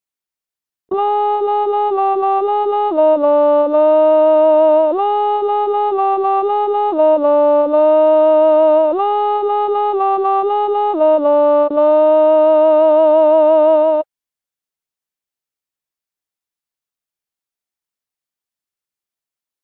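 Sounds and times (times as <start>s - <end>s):
alto saxophone melody: 0.9s - 14.0s.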